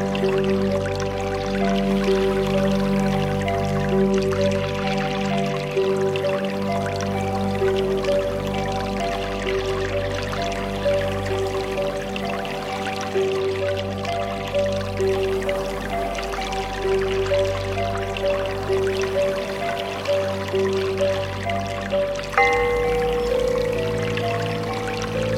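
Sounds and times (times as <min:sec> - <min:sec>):
trickling dripping water: 0:00.0 - 0:25.3
Tibetan bowls ringing: 0:22.0 - 0:25.3.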